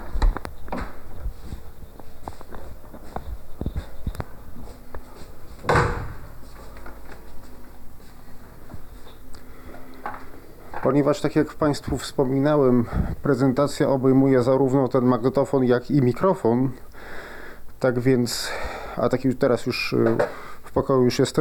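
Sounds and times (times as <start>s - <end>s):
door being closed: 5.6s - 7.1s
speech: 10.9s - 16.8s, 17.8s - 21.4s.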